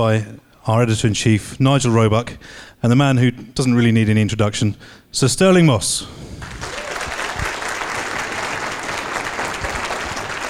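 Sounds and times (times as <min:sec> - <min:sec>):
speech: 0:00.0 - 0:06.8
crowd applauding: 0:06.4 - 0:10.4.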